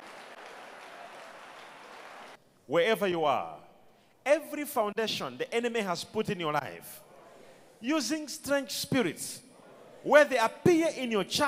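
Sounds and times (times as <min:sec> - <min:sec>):
audience clapping hands: 0:00.0 - 0:02.4
speech: 0:02.7 - 0:03.6, 0:04.2 - 0:07.1, 0:07.8 - 0:09.4, 0:10.0 - 0:11.4.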